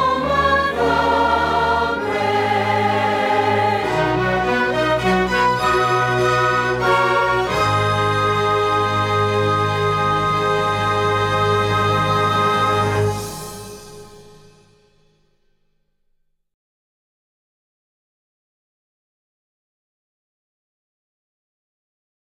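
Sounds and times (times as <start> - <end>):
national anthem music: 0.0 - 15.1.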